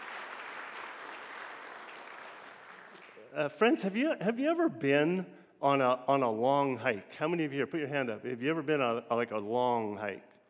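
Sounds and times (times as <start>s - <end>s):
audience round of applause: 0.0s - 3.2s
speech: 3.3s - 10.3s.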